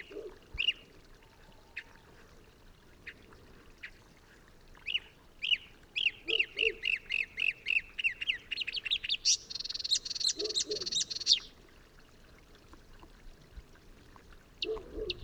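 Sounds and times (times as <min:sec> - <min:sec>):
marsh warbler song: 0:04.9 - 0:11.6.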